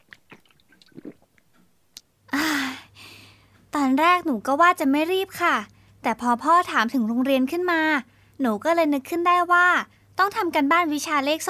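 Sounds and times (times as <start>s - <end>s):
child chewing and biting while eating hastily: 0.0s - 1.5s
speech: 3.9s - 11.4s.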